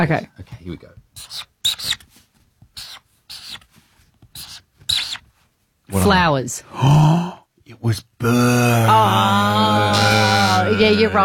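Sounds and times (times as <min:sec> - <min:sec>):
speech: 0:00.0 - 0:01.5, 0:05.9 - 0:11.2
drawing with a pen on paper: 0:01.2 - 0:02.0, 0:02.8 - 0:03.7, 0:04.3 - 0:05.2.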